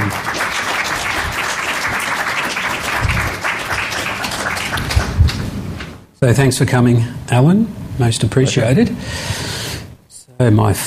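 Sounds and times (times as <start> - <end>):
audience applause: 0.0 - 5.4
speech: 6.2 - 9.5, 10.4 - 10.8.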